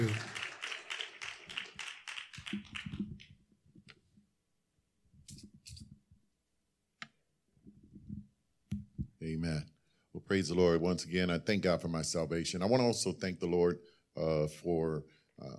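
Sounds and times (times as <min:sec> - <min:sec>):
audience applause: 0:00.0 - 0:03.0
scattered claps and taps: 0:00.0 - 0:03.4
speech: 0:02.5 - 0:02.8, 0:09.3 - 0:15.5.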